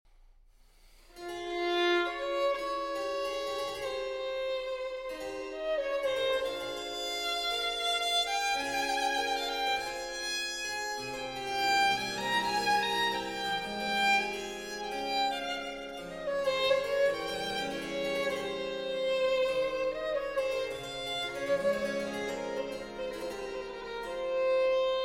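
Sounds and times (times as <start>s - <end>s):
violin sonata adagio in A major: 1.1s - 25.0s.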